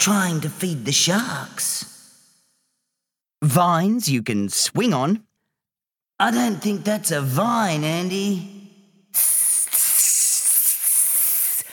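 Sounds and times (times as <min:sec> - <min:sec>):
speech: 0:00.0 - 0:01.9, 0:03.4 - 0:05.3, 0:06.2 - 0:08.6, 0:09.2 - 0:09.4
snake hissing: 0:09.2 - 0:11.7.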